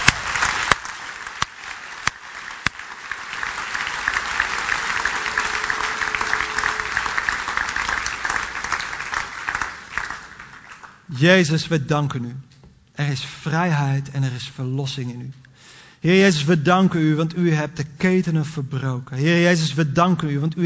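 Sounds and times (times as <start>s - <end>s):
crowd applause: 0.0s - 11.1s
speech: 11.2s - 15.4s, 16.0s - 20.6s.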